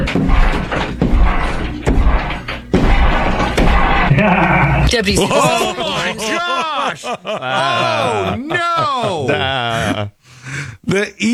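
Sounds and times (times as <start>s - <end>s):
heavy booming bangs against a shared wall: 0.0s - 4.9s
dull din: 0.0s - 10.1s
laughter: 0.0s - 10.2s
speech: 4.9s - 11.3s.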